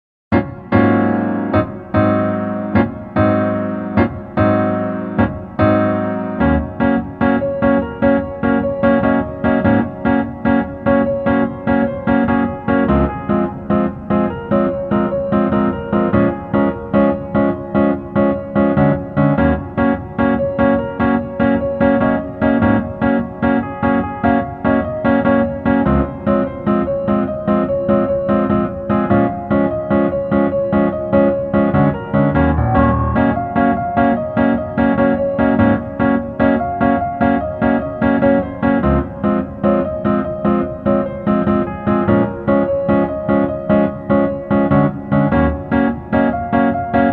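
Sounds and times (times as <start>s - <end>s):
piano: 0.3s - 47.1s.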